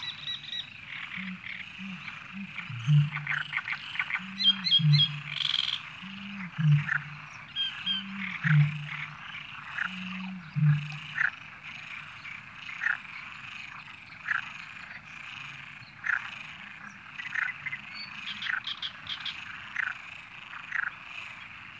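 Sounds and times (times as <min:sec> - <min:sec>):
great marsh warblers singing: 0:00.0 - 0:01.4, 0:02.2 - 0:09.3
coots calling: 0:00.0 - 0:06.2, 0:06.8 - 0:09.2
frogs croaking: 0:00.0 - 0:21.7.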